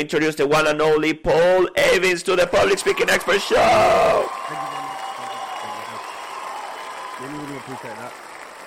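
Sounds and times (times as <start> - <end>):
speech: 0.0 - 4.8, 7.2 - 8.2
voices calling out: 2.6 - 8.0
crowd clapping: 2.6 - 8.6.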